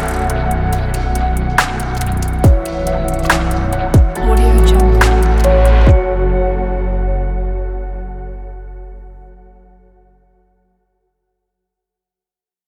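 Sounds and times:
ambient background chillstep music: 0.0s - 9.4s.

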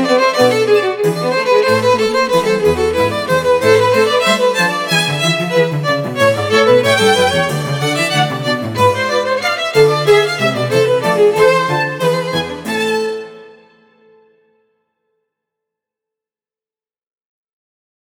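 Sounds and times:
two violins with chamber orchestra: 0.0s - 14.2s.

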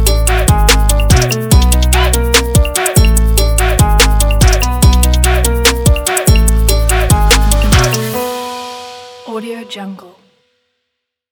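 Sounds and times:
Latino salsa trap beat: 0.0s - 8.4s.

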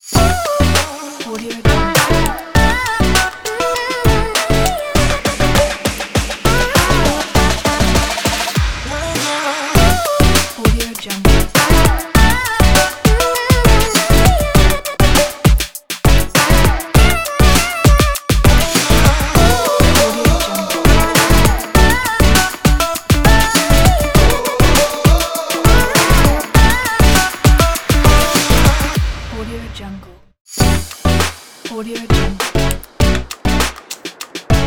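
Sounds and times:
upbeat fashion pop logo jingle: 0.0s - 34.6s.

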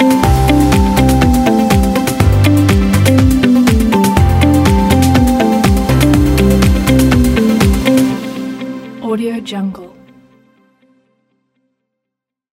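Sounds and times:
uplifting pop music: 0.0s - 9.9s.

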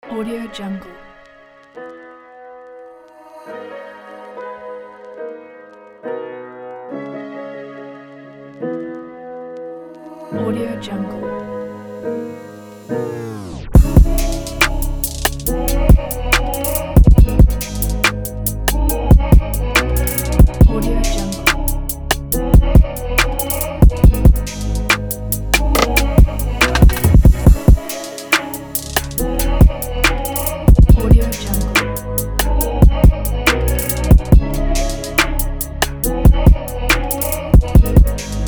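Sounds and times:
sexy erotic soul trap beat: 13.8s - 38.4s.

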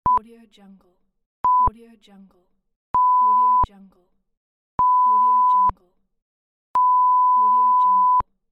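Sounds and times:
censor beep: 1.4s - 1.7s, 3.0s - 3.7s, 4.8s - 5.8s, 6.8s - 8.3s.

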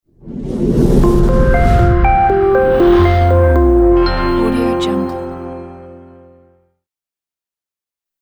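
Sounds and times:
clean audio logo: 0.0s - 6.5s.

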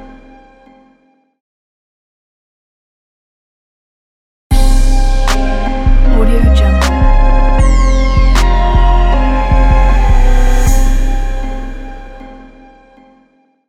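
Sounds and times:
soulful trap logo jingle: 4.5s - 13.0s.

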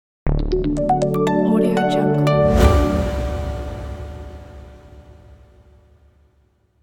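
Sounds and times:
minimal logo sound: 0.6s - 5.9s.

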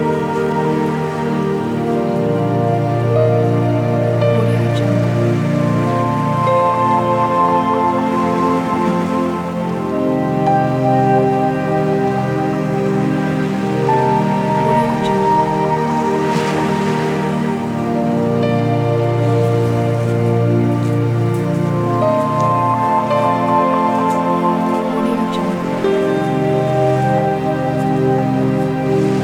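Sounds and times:
relaxing meditation piano music: 0.0s - 29.2s
waves: 0.0s - 29.2s.

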